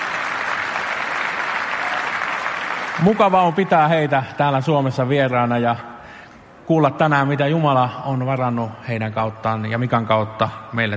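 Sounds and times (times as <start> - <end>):
audience applause: 0.0 - 3.4
speech: 3.0 - 5.9, 6.7 - 10.9.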